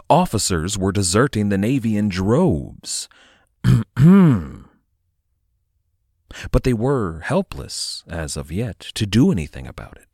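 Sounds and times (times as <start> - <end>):
speech: 0.1 - 4.6, 6.3 - 10.1
throat clearing: 3.6 - 4.8.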